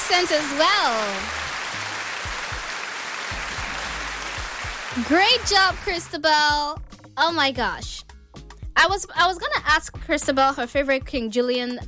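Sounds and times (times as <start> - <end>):
crowd applause: 0.0 - 6.0
speech: 0.1 - 1.8, 5.0 - 8.0, 8.8 - 11.8.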